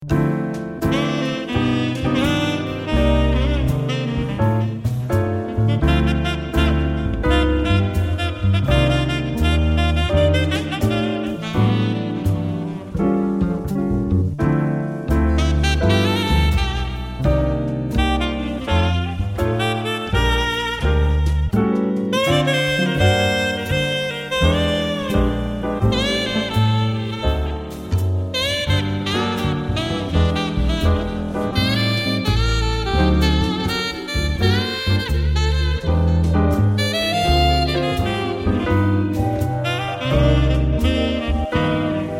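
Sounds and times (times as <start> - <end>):
saxophone solo: 0.1 - 14.2, 15.0 - 42.1.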